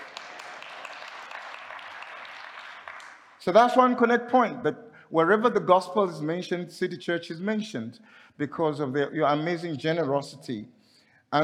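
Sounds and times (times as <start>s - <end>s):
audience applause at a church gathering: 0.0s - 3.4s
speech: 3.4s - 11.4s.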